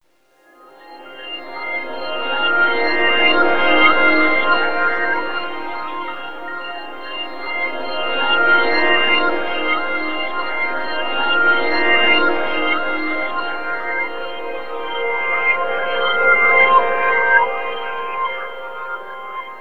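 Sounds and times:
electro lounge synth pads: 0.6 - 19.5.

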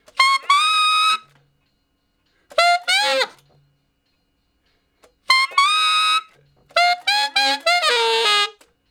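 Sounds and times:
tenor saxophone playing straight R&B in F: 0.0 - 1.4, 2.5 - 3.6, 5.3 - 8.7.

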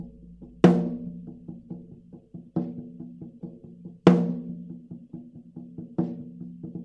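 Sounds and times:
laid back drum loop: 0.0 - 2.0.

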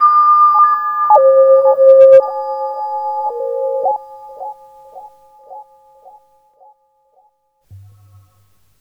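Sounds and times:
spectral tones: 0.0 - 5.6.

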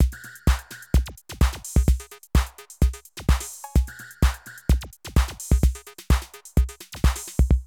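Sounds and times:
Euro techno drum loops: 0.0 - 7.6.

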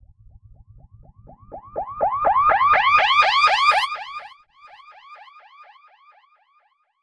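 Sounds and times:
filter-processed alarm siren samples at 125 bpm: 1.3 - 6.6.

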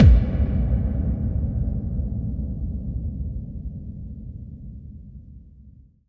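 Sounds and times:
dance drums: 0.0 - 0.9
bass drum FX: 0.0 - 2.5.

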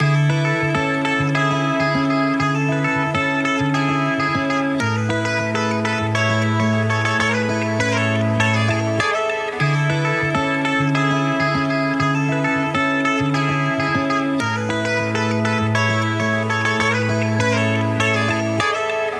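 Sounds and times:
melody loops: 0.0 - 19.1.

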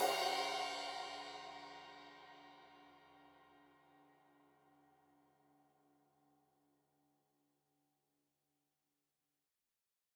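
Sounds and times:
15 inch crash cymbal edge hit: 0.0 - 1.8.

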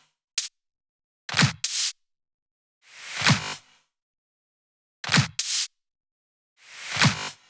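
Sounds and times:
drum loops: 1.6 - 1.9, 5.4 - 5.7.

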